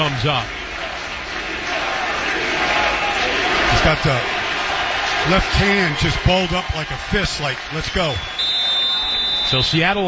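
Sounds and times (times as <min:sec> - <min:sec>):
speech: 0:00.0 - 0:00.6, 0:03.8 - 0:04.3, 0:05.2 - 0:08.4, 0:09.5 - 0:10.0
stadium crowd ovation for an injured football player: 0:00.0 - 0:10.0.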